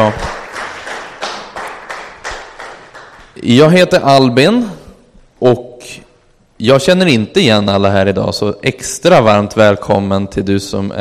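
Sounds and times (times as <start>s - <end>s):
speech: 0.0s - 0.4s, 3.4s - 4.8s, 5.4s - 6.0s, 6.6s - 10.9s
church congregation clapping for worship singers: 0.0s - 3.4s.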